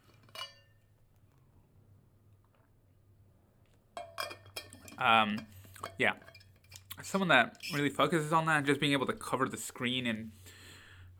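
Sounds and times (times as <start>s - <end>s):
glass clinking as someone drinks: 0.2s - 0.8s, 4.0s - 8.1s
speech: 5.0s - 6.3s, 7.0s - 10.5s.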